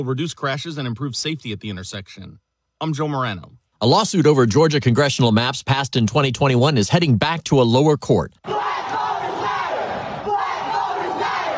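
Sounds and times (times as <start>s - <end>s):
speech: 0.0s - 8.9s
protest crowd chanting under the Gold Dome against congressional maps: 8.4s - 11.5s.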